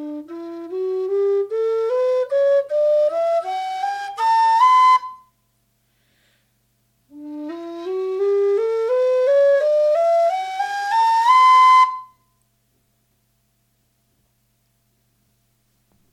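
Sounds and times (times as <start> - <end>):
whistle: 0.0 - 5.4, 7.5 - 12.4.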